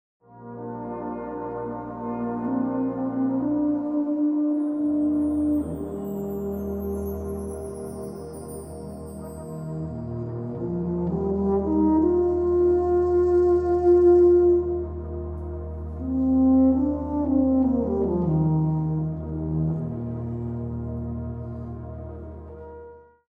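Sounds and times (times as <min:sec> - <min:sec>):
bass: 0:00.3 - 0:23.2.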